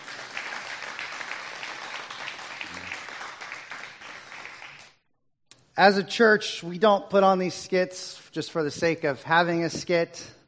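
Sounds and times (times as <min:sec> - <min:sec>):
audience applause: 0:00.0 - 0:04.9
speech: 0:05.8 - 0:10.4.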